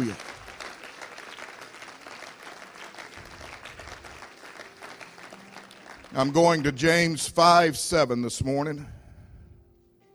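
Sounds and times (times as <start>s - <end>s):
audience applause: 0.0s - 7.2s
speech: 6.2s - 9.0s.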